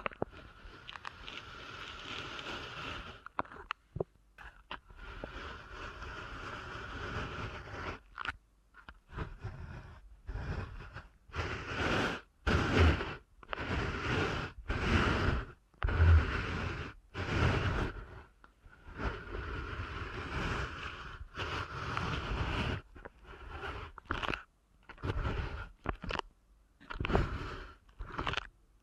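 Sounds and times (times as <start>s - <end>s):
ear canal massage rubbing hiss: 0.0s - 3.4s, 4.9s - 8.1s, 9.1s - 26.2s
ear canal massage crackly scraping friction: 0.0s - 28.8s.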